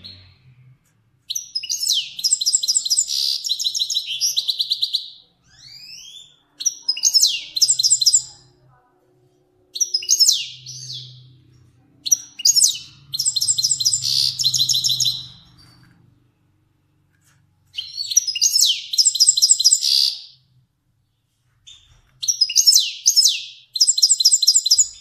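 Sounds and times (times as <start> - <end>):
faint low hum: 0.0 - 18.2
finch song of chirps and buzzy trills: 1.3 - 8.4, 9.8 - 11.4, 12.0 - 15.9, 17.7 - 20.4, 21.7 - 24.9.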